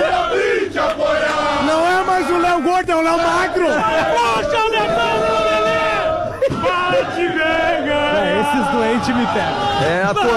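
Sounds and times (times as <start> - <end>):
football fans chanting in stadium: 0.0 - 10.3
laughter: 1.9 - 10.3
speech: 8.4 - 10.3.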